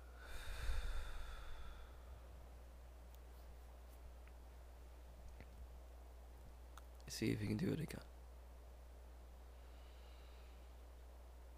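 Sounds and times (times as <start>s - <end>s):
breathing in through the nose and out during a guided breathing exercise: 0.0s - 2.2s
speech: 7.1s - 8.1s.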